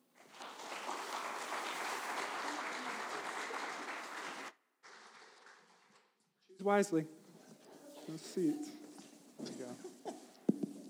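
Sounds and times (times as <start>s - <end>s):
audience applause welcoming panel guests to the stage: 0.0s - 6.2s
speech: 6.6s - 7.2s, 8.1s - 8.8s.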